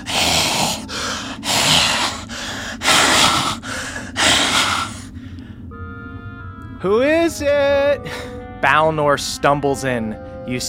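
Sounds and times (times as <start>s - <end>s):
voice imitating raspy labored breathing: 0.0s - 5.2s
speech: 6.8s - 10.6s.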